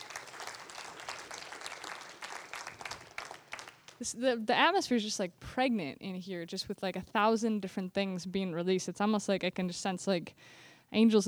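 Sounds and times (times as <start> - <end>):
audience clapping: 0.0 - 4.2
speech: 4.0 - 11.2.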